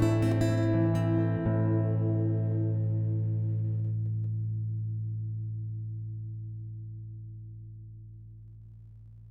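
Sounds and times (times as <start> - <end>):
guitar: 0.0 - 7.3.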